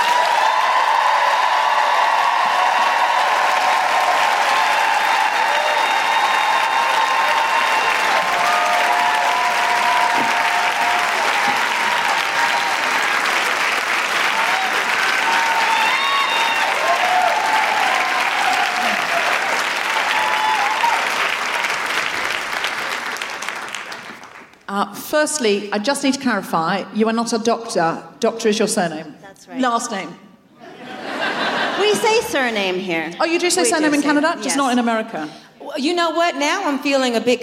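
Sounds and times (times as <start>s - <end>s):
voiced whoops: 0.0s - 13.0s, 14.3s - 21.2s
audience applause welcoming an introduced guest author: 0.0s - 24.7s
speech: 25.2s - 30.2s, 31.8s - 37.4s
laughter: 30.6s - 35.0s.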